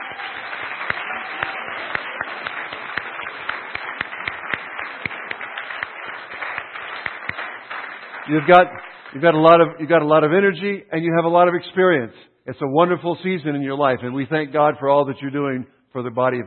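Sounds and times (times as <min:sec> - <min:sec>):
audience cheers and whoops: 0:00.0 - 0:03.1
crowd applauding: 0:00.0 - 0:09.5
speech: 0:08.3 - 0:16.4.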